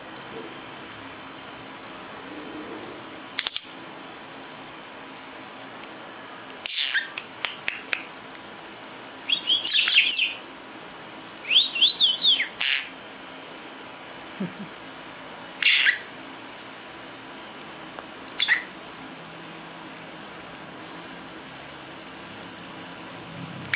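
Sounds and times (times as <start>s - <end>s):
lovebird giving shrill sharp chirps: 6.6s - 7.9s, 9.3s - 10.4s, 11.4s - 12.9s, 15.6s - 16.1s, 18.4s - 18.7s.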